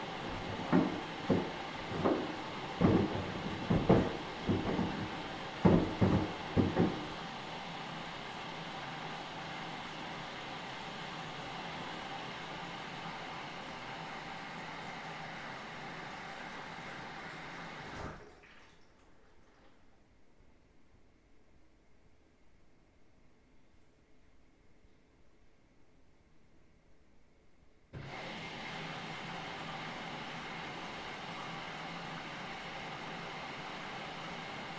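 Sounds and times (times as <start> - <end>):
shoes washing in a washing machine: 0.0 - 20.0, 28.0 - 34.7.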